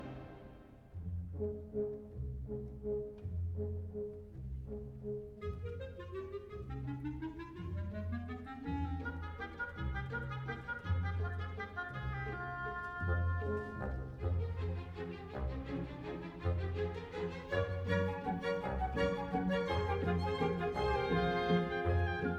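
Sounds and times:
philharmonic orchestra playing a waltz: 0.0 - 7.4, 8.1 - 22.3.

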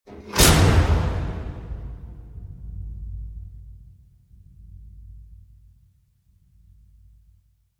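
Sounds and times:
object slamming: 0.1 - 3.5.

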